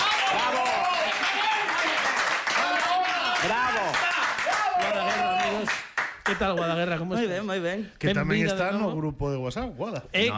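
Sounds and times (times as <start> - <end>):
audience applause and clapping: 0.0 - 6.4
speech: 6.4 - 10.3.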